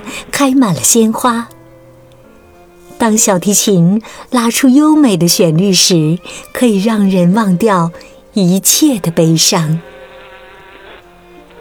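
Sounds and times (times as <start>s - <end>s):
speech: 0.4s - 1.6s, 3.0s - 10.0s
bee buzzing, wings beating: 5.8s - 11.6s.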